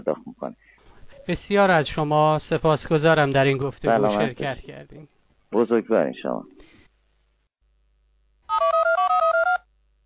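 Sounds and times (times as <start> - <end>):
speech: 1.3 - 6.5
telephone ringing as a radio host places a call: 8.5 - 9.7.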